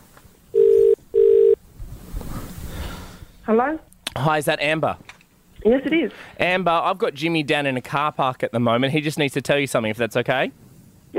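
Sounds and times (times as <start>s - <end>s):
phone line ringing out: 0.6s - 1.6s
speech: 3.5s - 11.1s.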